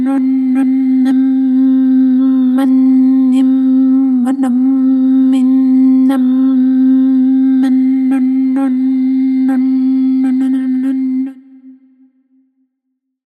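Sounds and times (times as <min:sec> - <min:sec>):
lyrical vocal effect single note: 0:00.0 - 0:11.8.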